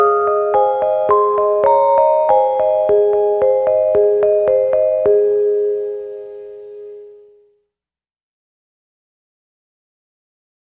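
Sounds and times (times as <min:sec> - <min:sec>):
quiet music: 0:00.0 - 0:07.4.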